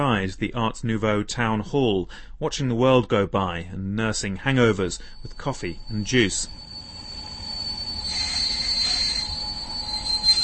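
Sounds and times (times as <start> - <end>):
speech: 0.0 - 6.6
train with squealing wheels: 4.6 - 10.4.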